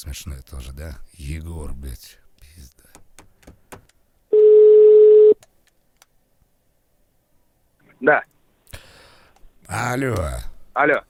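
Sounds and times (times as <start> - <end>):
speech: 0.0 - 3.0, 8.0 - 8.3, 9.7 - 11.0
telephone call ringing tone: 4.3 - 5.4.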